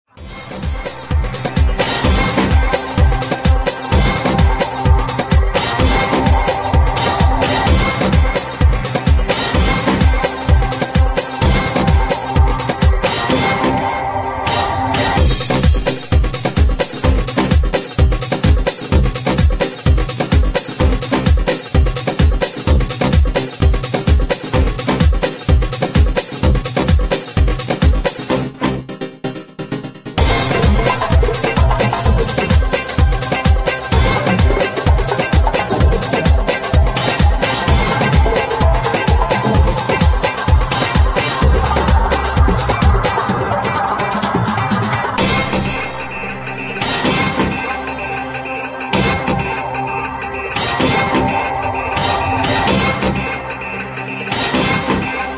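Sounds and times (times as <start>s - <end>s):
samba music: 0.1s - 29.3s, 30.1s - 55.3s.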